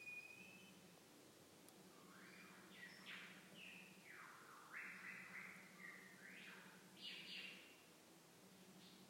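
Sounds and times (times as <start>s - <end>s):
lyrebird song with flat whistled notes and brief bursts: 0.0s - 0.8s, 1.9s - 7.9s, 8.8s - 9.0s.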